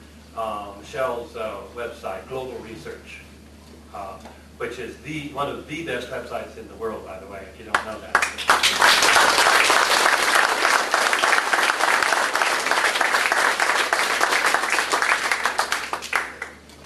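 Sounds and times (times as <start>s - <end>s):
speech: 0.4s - 3.3s, 3.9s - 9.5s
audience applause: 8.2s - 16.6s.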